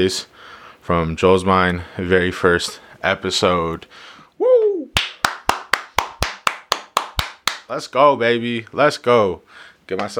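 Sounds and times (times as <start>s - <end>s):
speech: 0.0s - 4.5s, 7.7s - 10.1s
round of applause: 5.0s - 7.7s.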